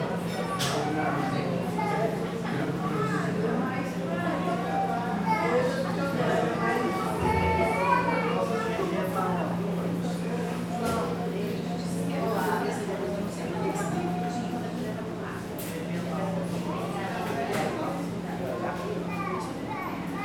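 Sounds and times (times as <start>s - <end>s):
murmur of voices inside a bakery: 0.0s - 20.2s
child in a bakery: 6.7s - 8.6s, 19.1s - 20.2s.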